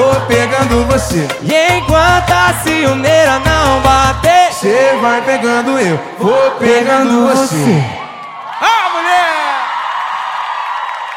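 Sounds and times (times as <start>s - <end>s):
speech: 0.2s - 8.0s
audience applause: 8.1s - 11.1s.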